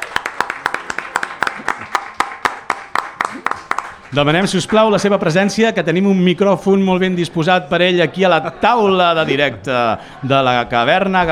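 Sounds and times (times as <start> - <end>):
steady rhythmic clapping: 0.0 - 4.8
speech: 4.1 - 11.3.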